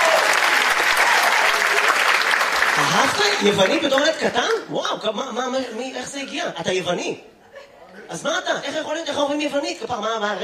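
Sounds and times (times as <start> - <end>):
crowd applause: 0.0 - 4.6
speech: 2.9 - 7.4, 8.0 - 10.4.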